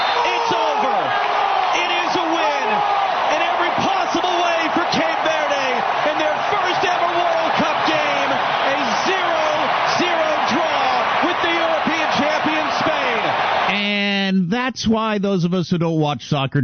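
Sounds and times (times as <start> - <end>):
soccer crowd cheering: 0.0 - 14.1
speech: 14.8 - 16.6.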